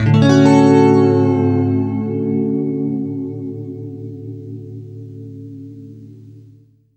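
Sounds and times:
guitar chords: 0.0 - 6.9.

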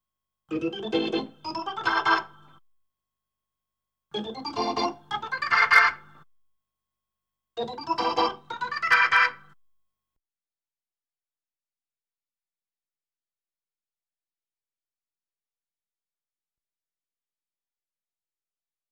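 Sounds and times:
Hammond B3 organ: 0.5 - 2.6, 4.2 - 6.2, 7.6 - 9.5.

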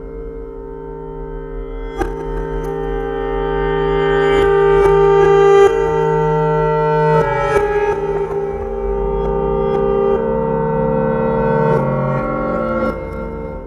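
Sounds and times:
reversed autoharp: 0.0 - 13.6.

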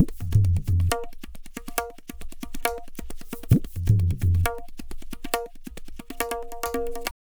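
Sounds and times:
tabla playing: 0.0 - 7.1.

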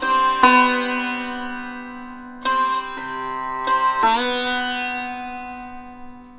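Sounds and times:
Indian traditional sitar: 0.0 - 6.3.

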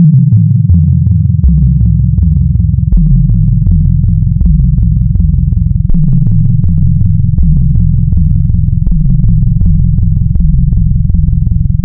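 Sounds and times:
additive wavetable synth sine tones: 0.0 - 11.8.

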